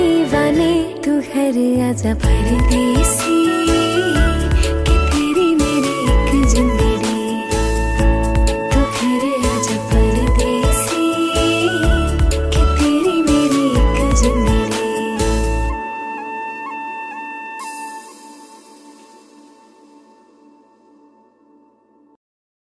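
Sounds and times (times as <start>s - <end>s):
woman singing a cover: 0.0s - 16.5s.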